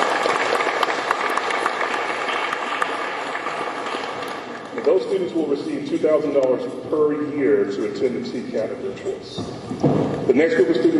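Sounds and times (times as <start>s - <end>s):
audience applause: 0.0s - 4.6s
speech: 4.9s - 10.9s.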